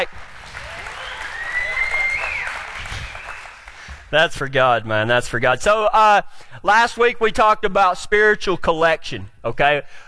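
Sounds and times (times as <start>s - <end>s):
speech: 0.0s - 0.3s, 4.1s - 10.0s
church congregation clapping during a worship service: 0.0s - 4.1s.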